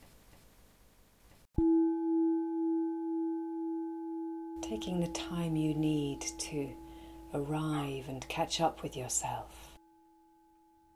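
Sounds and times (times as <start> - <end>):
gong ringing: 1.6 - 8.3
speech: 4.7 - 9.7.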